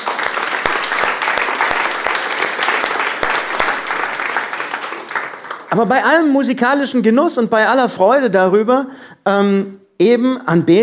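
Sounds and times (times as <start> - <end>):
audience applause: 0.0 - 6.0
speech: 5.7 - 10.8.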